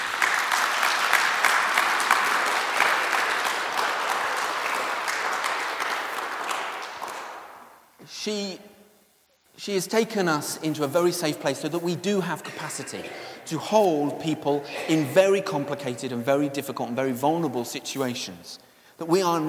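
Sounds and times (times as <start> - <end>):
audience applause: 0.0 - 7.7
speech: 8.2 - 8.7, 9.6 - 19.4.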